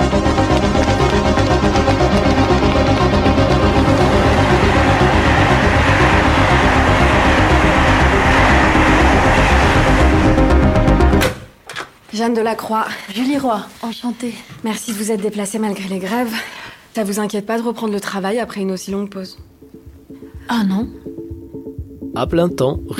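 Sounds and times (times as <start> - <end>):
train departing from a station platform: 0.1 - 11.3
speech: 12.2 - 19.6, 20.5 - 21.2, 22.1 - 22.9.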